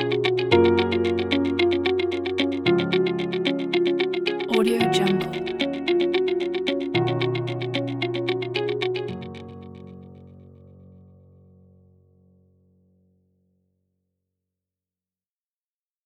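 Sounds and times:
corporate minimal uplifting music: 0:00.0 - 0:10.6.

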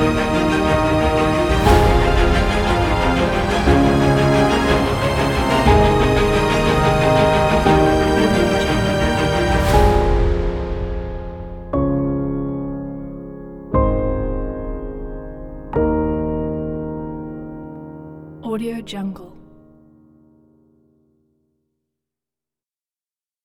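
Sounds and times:
epic music: 0:00.0 - 0:17.8.

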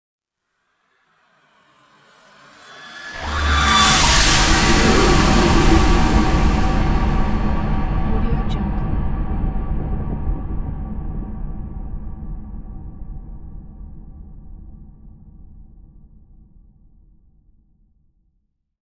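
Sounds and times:
cinematic horror music: 0:02.4 - 0:12.0.

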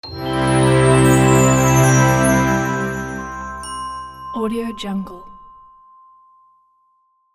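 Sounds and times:
short orchestra chord logo: 0:00.0 - 0:04.3.

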